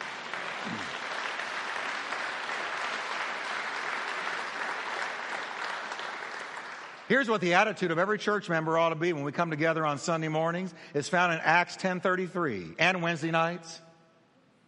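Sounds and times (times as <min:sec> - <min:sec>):
large crowd clapping: 0:00.0 - 0:07.8
speech: 0:07.1 - 0:13.9.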